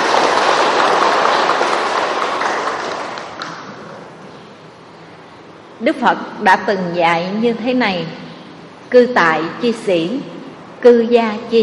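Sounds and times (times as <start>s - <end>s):
loud applause: 0.0s - 4.2s
speech: 5.8s - 8.2s, 8.9s - 11.6s.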